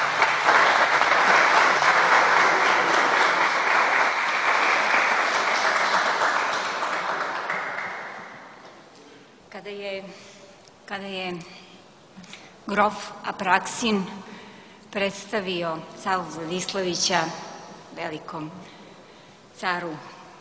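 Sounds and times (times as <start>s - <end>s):
audience applause after a film screening: 0.0s - 8.6s
speech: 12.8s - 14.3s, 14.9s - 18.8s, 19.6s - 20.2s.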